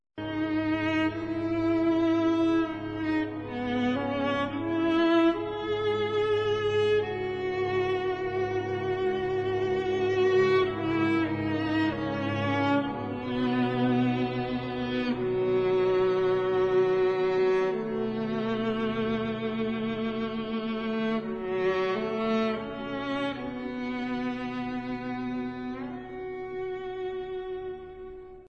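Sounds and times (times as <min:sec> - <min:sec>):
viola: 0:00.2 - 0:28.4.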